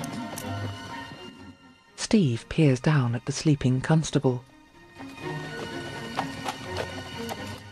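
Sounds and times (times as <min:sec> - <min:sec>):
speech: 0:02.1 - 0:04.5
bridled horse's hooves clopping at a walking pace: 0:04.9 - 0:07.6.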